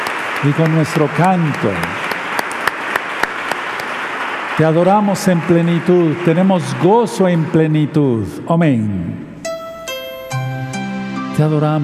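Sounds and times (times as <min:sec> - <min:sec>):
audience clapping hands: 0:00.0 - 0:08.3
speech: 0:00.4 - 0:02.0, 0:04.6 - 0:09.3, 0:11.4 - 0:11.8.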